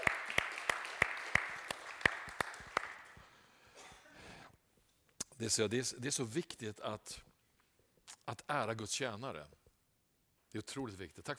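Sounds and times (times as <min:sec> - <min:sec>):
audience applause: 0:00.0 - 0:03.2
speech: 0:05.4 - 0:07.3, 0:08.3 - 0:09.6, 0:10.5 - 0:11.3.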